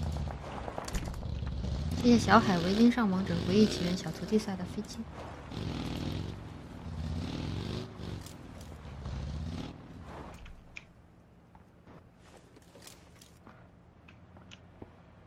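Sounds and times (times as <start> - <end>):
vehicle approaching: 0.0 - 10.8
speech: 2.0 - 5.9.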